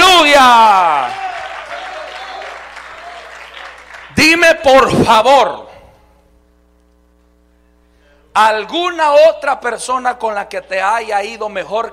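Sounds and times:
audience clapping: 0.4s - 4.4s
speech: 4.6s - 5.7s, 8.4s - 11.9s.

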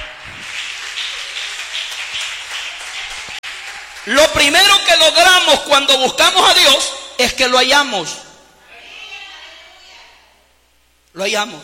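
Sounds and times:
audience applause: 0.0s - 4.8s
speech: 4.1s - 8.2s, 11.2s - 11.6s.

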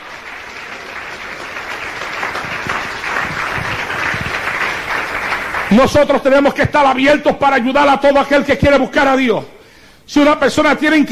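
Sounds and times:
audience applauding: 0.0s - 6.2s
speech: 5.7s - 11.1s.

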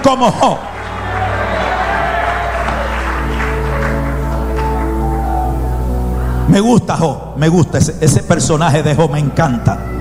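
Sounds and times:
audience applauding: 0.0s - 6.3s
speech: 0.1s - 0.7s, 6.5s - 9.9s.

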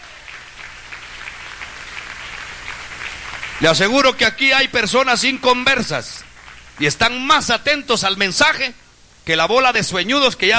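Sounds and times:
crowd clapping: 0.0s - 4.3s, 6.2s - 7.1s
speech: 3.6s - 6.2s, 6.8s - 10.5s.

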